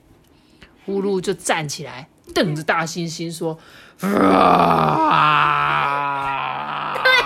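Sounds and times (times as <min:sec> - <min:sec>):
speech: 0:00.8 - 0:05.9
person imitating lion roar: 0:04.0 - 0:07.2.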